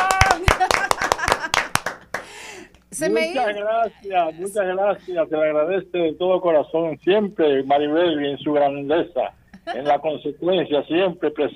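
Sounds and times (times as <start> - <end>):
laughter: 0.0 - 2.4, 3.3 - 5.3, 9.6 - 10.2
audience applause: 0.0 - 2.6
voices calling out: 2.9 - 9.0, 9.6 - 10.9
speech: 3.0 - 11.5.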